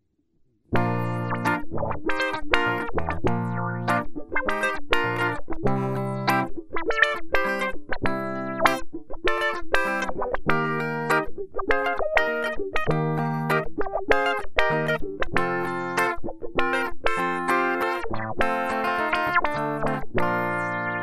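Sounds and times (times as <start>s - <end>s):
musical riff: 0.8s - 21.0s.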